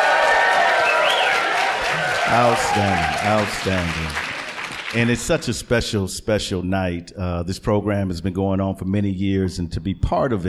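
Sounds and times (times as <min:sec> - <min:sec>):
audience shouting at a Martin Luther King Day event: 0:00.0 - 0:03.6
audience at a Martin Luther King Day event at Temple B'nai Israel clapping: 0:00.0 - 0:05.7
speech: 0:02.3 - 0:04.3, 0:04.9 - 0:10.4.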